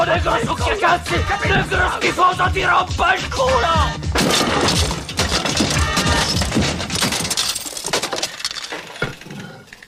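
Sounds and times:
speech: 0.1 - 4.9
radio being smashed to pieces: 4.2 - 9.3.

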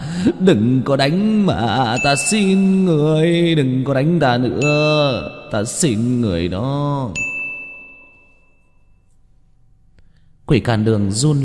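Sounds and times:
speech: 0.2 - 7.3, 10.5 - 11.4
system notification ding chime: 2.0 - 3.5, 4.5 - 6.5, 7.1 - 8.8.

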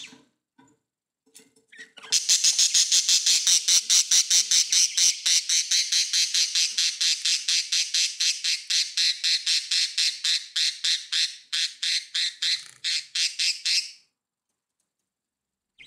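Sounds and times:
budgerigar squawking: 2.1 - 13.9.

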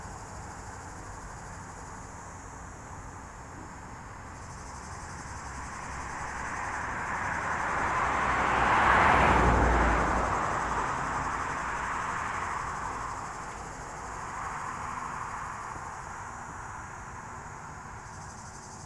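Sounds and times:
cicadas buzzing in the heat beside Lac du Bourget: 4.4 - 18.8.

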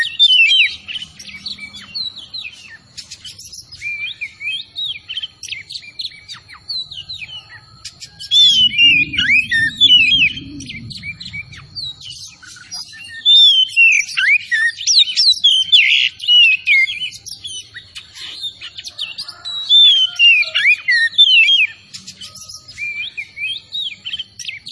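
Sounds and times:
Oriental magpie-robin song: 0.0 - 24.6
steady high tone: 6.9 - 12.6.

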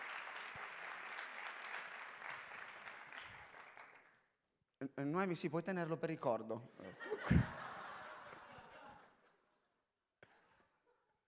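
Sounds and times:
audience applause for the couples: 0.0 - 4.1
speech: 4.8 - 7.5
laughter: 6.8 - 9.4.

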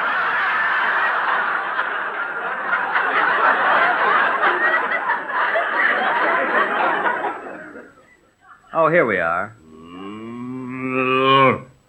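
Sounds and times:
laughter: 0.0 - 8.8
speech: 8.9 - 9.6
cow giving a long moo: 9.6 - 11.8.

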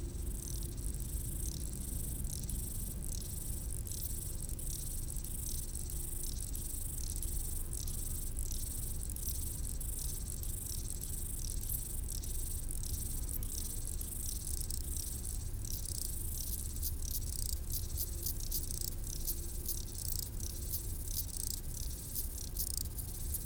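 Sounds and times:
grasshoppers stridulating: 0.1 - 23.4.

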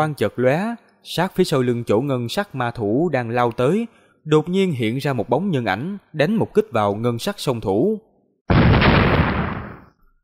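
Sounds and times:
speech: 0.0 - 8.6
loud explosions: 8.5 - 10.0.

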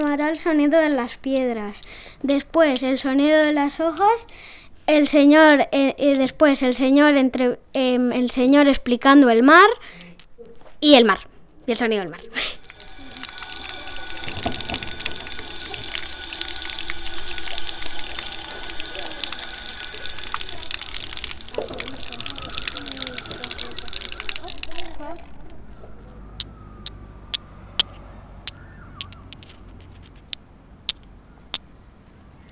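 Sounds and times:
speech: 0.0 - 10.0, 10.8 - 12.6
water fountain flowing: 12.2 - 25.7.

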